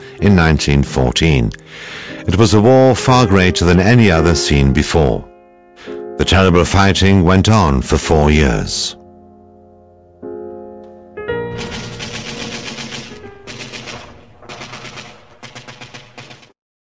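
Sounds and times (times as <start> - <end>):
speech: 0.2 - 5.3, 6.2 - 9.0
First World War automatic weapon fire: 11.5 - 16.6.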